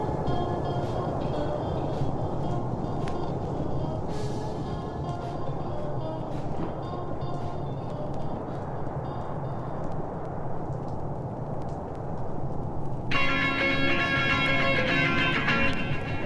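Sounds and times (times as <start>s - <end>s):
rain falling: 0.0s - 16.2s.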